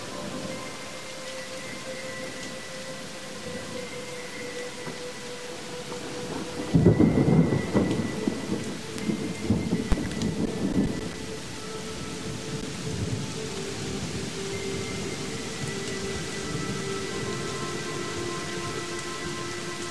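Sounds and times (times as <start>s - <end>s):
rain: 0.0s - 19.9s
relaxation music: 0.0s - 19.9s
thunder: 6.0s - 11.3s.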